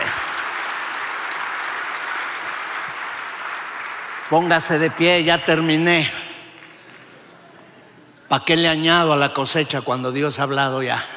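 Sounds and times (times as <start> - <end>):
audience applauding: 0.0 - 7.4
speech: 4.3 - 6.2, 8.3 - 11.1.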